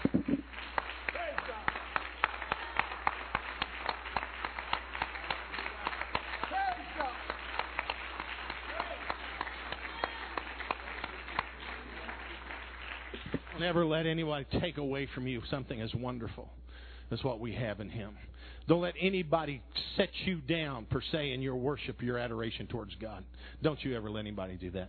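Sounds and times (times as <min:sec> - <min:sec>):
audience hand clapping: 0:00.0 - 0:14.4
speech: 0:13.6 - 0:24.8.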